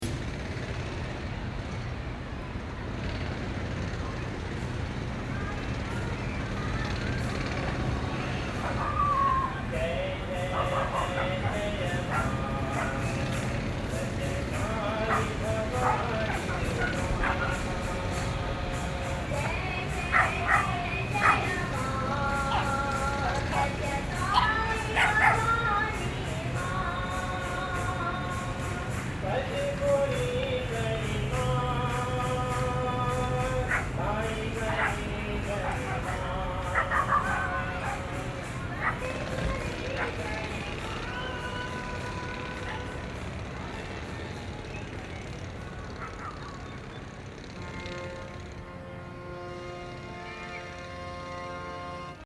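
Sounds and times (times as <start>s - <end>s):
city ambience: 0.0s - 52.2s
person praying: 5.4s - 43.7s.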